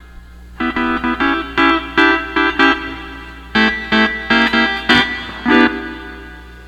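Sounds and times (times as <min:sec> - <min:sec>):
12-string lap guitar playing: 0:00.6 - 0:06.6.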